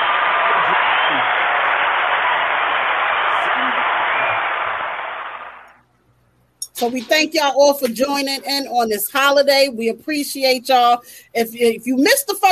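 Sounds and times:
round of applause: 0:00.0 - 0:05.8
speech: 0:06.8 - 0:12.4.

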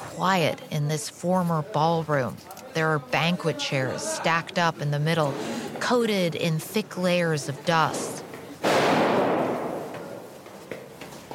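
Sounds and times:
speech: 0:00.2 - 0:08.1
gunfire in a former ballroom: 0:08.6 - 0:10.3.

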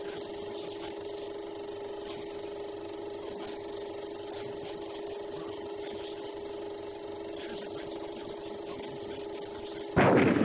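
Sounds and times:
low steady hum: 0:00.0 - 0:10.4
gunfire in a film trailer: 0:10.0 - 0:10.4.

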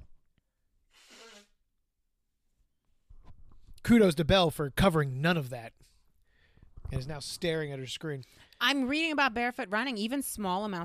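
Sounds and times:
person blowing nose: 0:00.9 - 0:01.6
speech: 0:03.9 - 0:05.9, 0:06.9 - 0:10.8.

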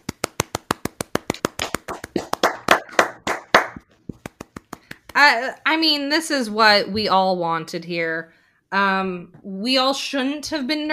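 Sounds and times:
celebratory rhythmic hand clapping: 0:00.0 - 0:05.4
speech: 0:05.2 - 0:10.9.

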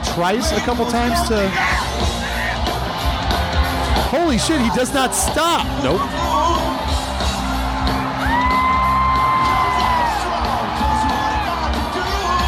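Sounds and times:
loud concert crowd cheering, whooping and yelling: 0:00.0 - 0:12.4
speech: 0:00.2 - 0:02.2, 0:04.1 - 0:06.2
long rising high whoops: 0:08.0 - 0:11.7.

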